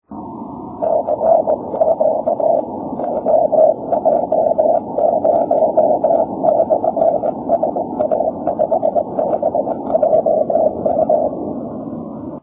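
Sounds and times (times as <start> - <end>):
6m continuous wave radio tone: 0.0 - 12.4.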